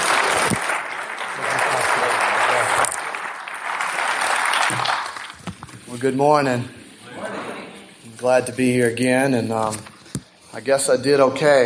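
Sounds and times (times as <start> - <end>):
audience applause: 0.0 - 5.5
speech: 6.0 - 6.8, 8.2 - 9.9, 10.5 - 11.6.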